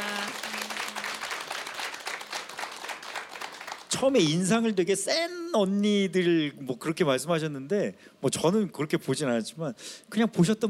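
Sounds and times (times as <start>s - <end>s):
audience applause: 0.0s - 3.9s
speech: 4.0s - 10.6s.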